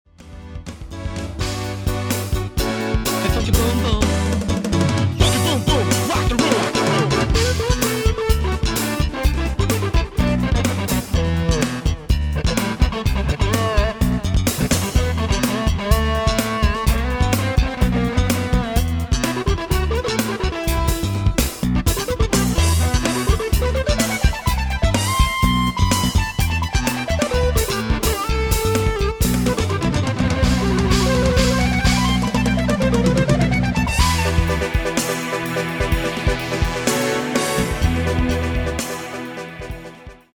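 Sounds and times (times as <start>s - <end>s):
EVI solo: 1.4s - 40.2s.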